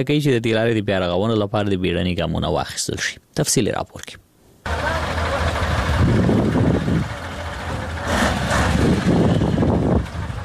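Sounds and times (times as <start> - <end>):
speech: 0.0 - 5.3
large trucks rumbling on a muddy rutted highway between Uruzgan and Kandahar: 4.6 - 10.4.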